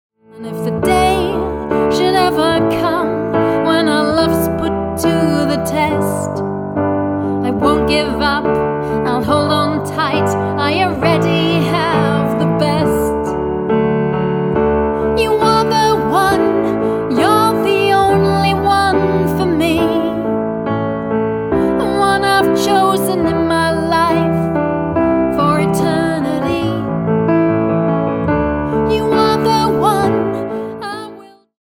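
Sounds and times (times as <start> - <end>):
piano: 0.1 - 31.6.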